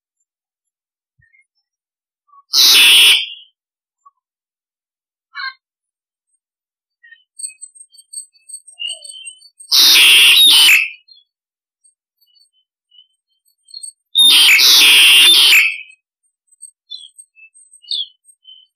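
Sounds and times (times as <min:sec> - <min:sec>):
starling soft chirps and twitters: 0:01.2 - 0:04.3, 0:05.3 - 0:05.7, 0:06.3 - 0:18.7
starling rasping screech: 0:02.5 - 0:03.4, 0:09.7 - 0:11.0, 0:14.2 - 0:15.9.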